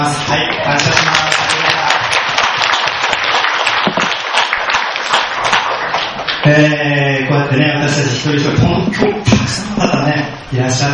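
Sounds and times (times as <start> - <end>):
speech: 0.0 - 1.3, 6.5 - 10.9
audience applause: 0.4 - 6.5.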